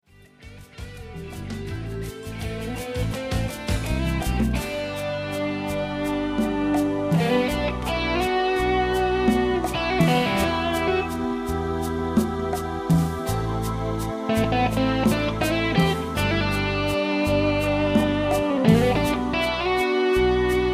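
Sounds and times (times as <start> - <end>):
samba music: 1.3 - 20.7.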